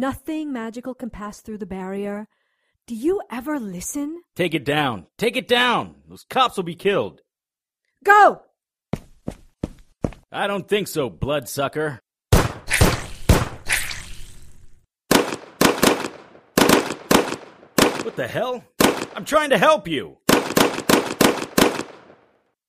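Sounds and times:
speech: 0.0s - 7.2s, 8.0s - 9.4s, 10.3s - 12.0s, 18.2s - 20.3s
gunshots: 12.3s - 13.9s, 15.1s - 19.4s, 20.3s - 22.4s.

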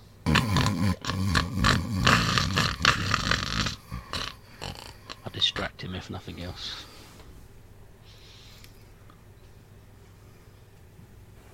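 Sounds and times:
loud snoring echoing in a cave: 0.2s - 5.7s
speech: 5.9s - 6.9s.

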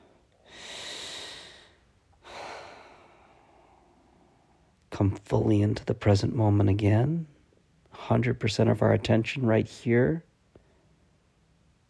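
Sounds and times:
long deep breath during a guided relaxation exercise: 0.0s - 4.7s
speech: 5.0s - 7.3s, 8.0s - 10.3s.

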